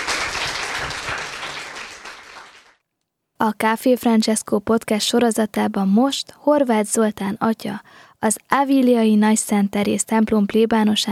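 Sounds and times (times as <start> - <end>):
applause: 0.0 - 2.8
speech: 3.4 - 11.0.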